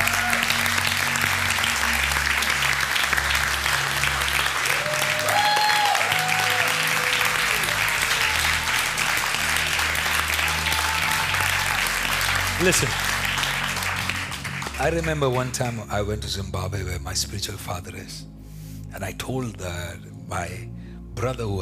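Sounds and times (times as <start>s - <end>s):
audience hand clapping applause: 0.0s - 16.1s
speech: 12.6s - 13.2s, 14.8s - 18.4s, 19.0s - 21.6s.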